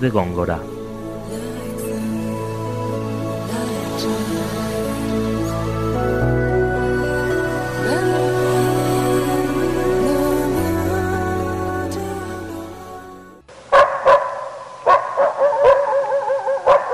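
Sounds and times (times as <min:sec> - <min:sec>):
music passage: 0:00.0 - 0:13.5
dog barking loudly: 0:13.7 - 0:16.9.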